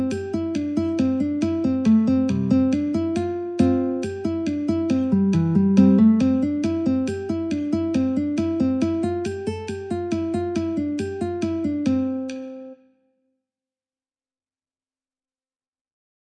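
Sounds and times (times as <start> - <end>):
metronome at 69: 0.0 - 12.7
guitar in C: 0.0 - 12.8.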